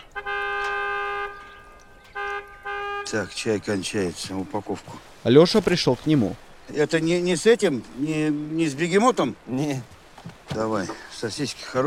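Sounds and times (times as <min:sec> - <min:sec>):
car horn honking: 0:00.0 - 0:03.9
speech: 0:03.1 - 0:11.8.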